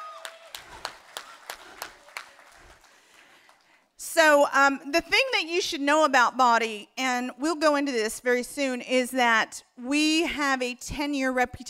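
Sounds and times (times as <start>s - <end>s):
sparse audience applause: 0.0s - 3.9s
speech: 4.2s - 11.6s.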